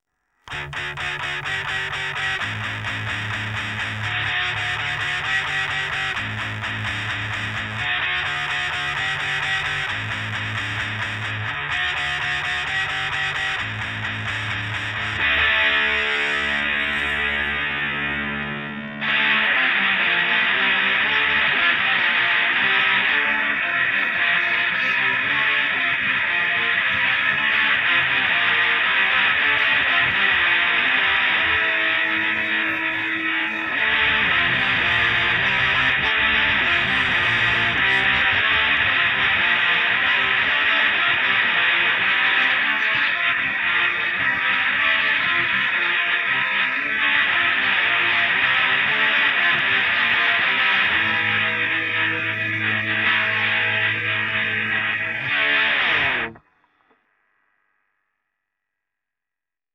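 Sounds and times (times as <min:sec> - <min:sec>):
guitar: 0:00.4 - 0:57.2.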